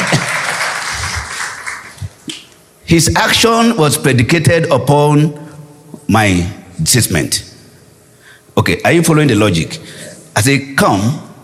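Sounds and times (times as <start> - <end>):
audience applause: 0.0 - 2.0
speech: 2.9 - 5.4, 6.1 - 7.5, 8.6 - 11.2.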